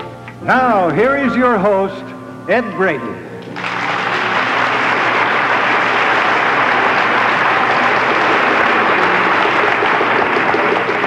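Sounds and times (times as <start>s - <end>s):
speech: 0.5s - 3.2s
studio audience applauding: 3.4s - 11.0s.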